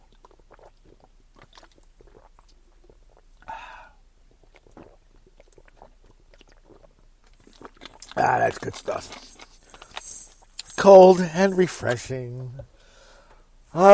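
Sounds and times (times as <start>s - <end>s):
person drinking water in gulps: 0.0s - 10.8s
mouth noises: 4.4s - 12.7s, 13.7s - 13.9s
speech: 8.2s - 9.3s, 10.8s - 12.7s, 13.7s - 13.9s.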